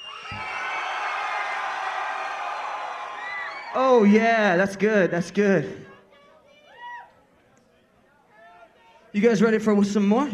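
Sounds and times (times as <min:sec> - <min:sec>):
concert crowd screaming: 0:00.0 - 0:04.2
speech: 0:03.7 - 0:05.9, 0:09.2 - 0:10.3.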